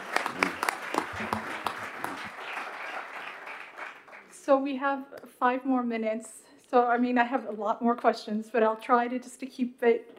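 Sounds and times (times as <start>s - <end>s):
audience clapping: 0.0s - 4.4s
speech: 4.5s - 10.1s.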